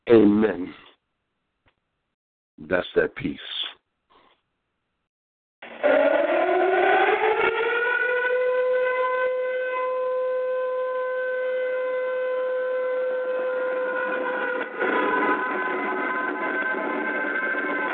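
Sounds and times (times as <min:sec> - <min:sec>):
speech: 0:00.1 - 0:00.8, 0:02.6 - 0:03.8
alarm siren: 0:05.6 - 0:17.9.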